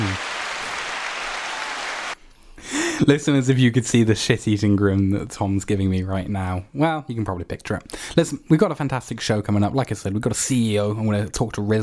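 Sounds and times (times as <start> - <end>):
applause sound effect from soundboard: 0.0 - 2.2
speech: 3.0 - 11.8.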